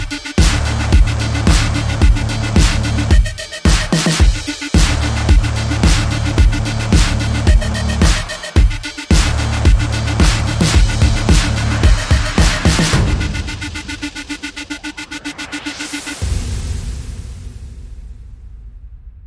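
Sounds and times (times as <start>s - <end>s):
bass: 0.0s - 14.8s
synths: 0.0s - 17.4s.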